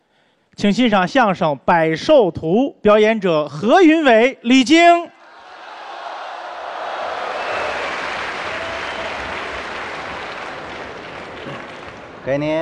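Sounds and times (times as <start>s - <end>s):
speech: 0.6s - 5.1s, 12.3s - 12.5s
audience applause: 5.3s - 12.5s.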